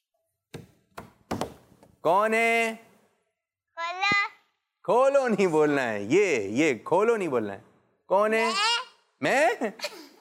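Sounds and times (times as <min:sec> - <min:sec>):
knocking on a door: 0:00.5 - 0:01.6
speech: 0:02.0 - 0:02.9, 0:04.8 - 0:10.1.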